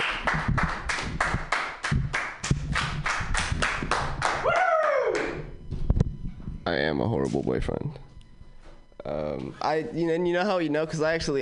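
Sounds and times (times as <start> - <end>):
audience applause: 0.0 - 5.4
speech: 6.9 - 8.0, 9.4 - 11.4.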